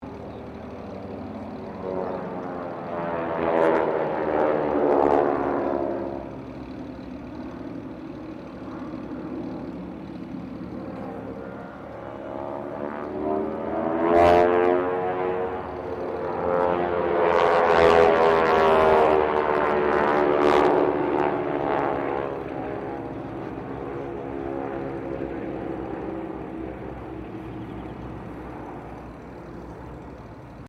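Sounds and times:
squadron of unknown propeller aircraft passing: 0:00.0 - 0:30.6.

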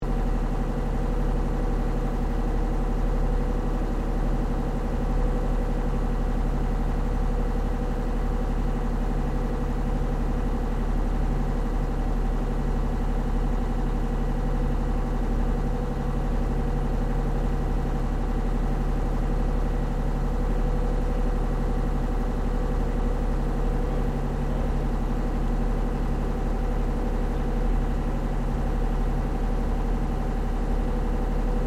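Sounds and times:
large river water taxi engine: 0:00.0 - 0:31.6.

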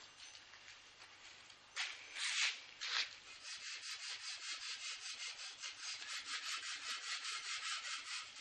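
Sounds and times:
sculpting scrape: 0:01.9 - 0:08.4.

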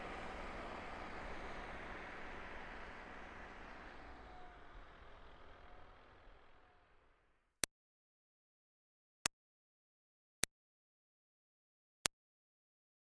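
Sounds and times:
2005 Smart Fortwo car: 0:00.0 - 0:07.0.

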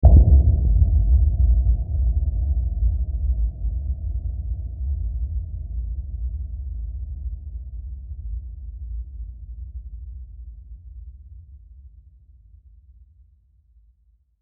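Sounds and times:
dark deep filtered hit: 0:00.0 - 0:04.9.

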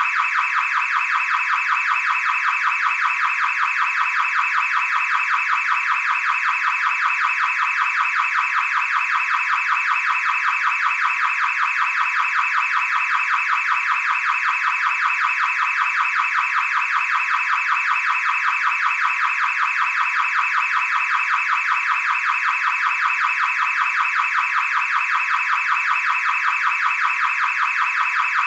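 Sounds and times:
car alarm beeps: 0:00.0 - 0:28.4.

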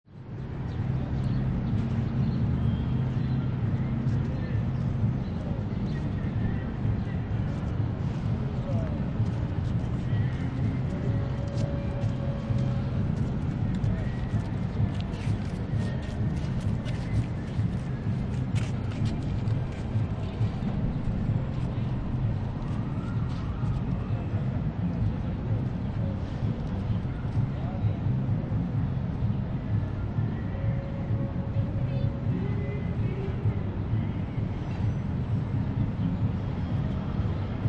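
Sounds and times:
people walking by in Battery Park near the harbour: 0:00.1 - 0:37.6.

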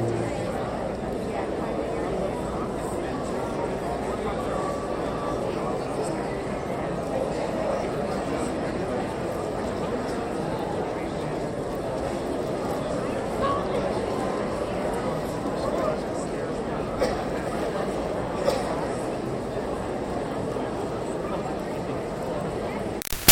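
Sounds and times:
band playing in an auditorium: 0:00.0 - 0:00.8
high school graduation crowd chatter in an auditorium: 0:00.0 - 0:22.5.

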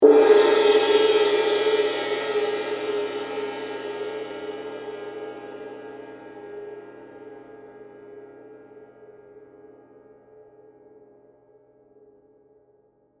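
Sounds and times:
suspended cymbal: 0:00.0 - 0:08.2.

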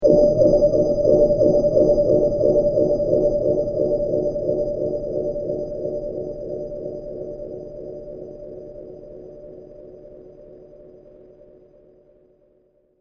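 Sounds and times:
long deep reverberations: 0:00.0 - 0:07.2.

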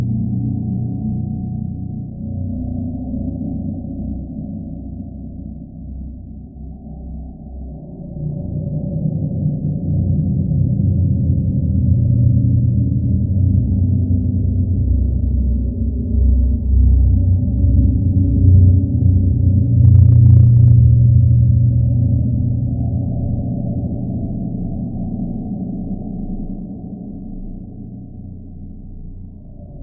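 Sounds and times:
cold dark demonic horror cave drone: 0:00.0 - 0:29.8.

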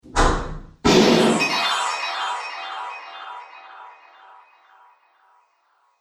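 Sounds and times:
wizard magic explosion: 0:00.9 - 0:05.0.

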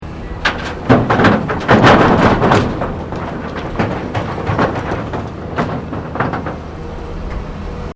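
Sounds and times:
construction earthmover unloading into dump truck: 0:00.0 - 0:07.9.

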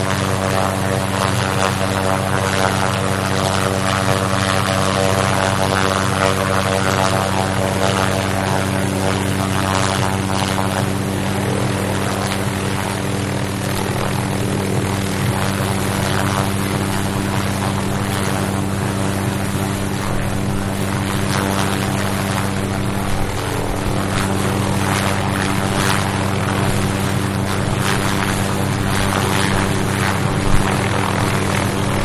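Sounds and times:
helicopter starting up, idling and taking off: 0:00.0 - 0:32.0.

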